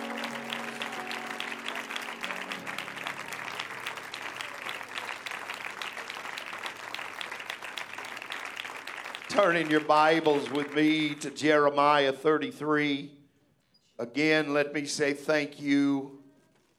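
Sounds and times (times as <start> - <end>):
audience clapping hands: 0.0 - 11.6
speech: 9.4 - 13.2, 14.0 - 16.2.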